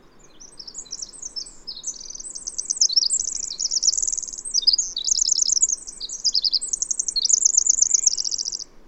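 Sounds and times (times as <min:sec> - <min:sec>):
bird song of fast high-pitched twittering trills: 0:00.2 - 0:08.7.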